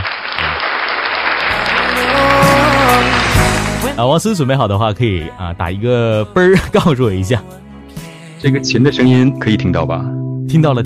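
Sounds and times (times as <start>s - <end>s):
applause: 0.0s - 3.9s
speech: 4.0s - 7.6s, 8.4s - 10.8s.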